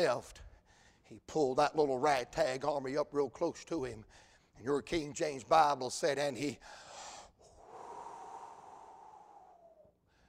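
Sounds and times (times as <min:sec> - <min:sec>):
speech: 0:00.0 - 0:00.5, 0:01.1 - 0:06.9
preacher exhaling loudly, imitating breathing on disciples: 0:06.8 - 0:09.9.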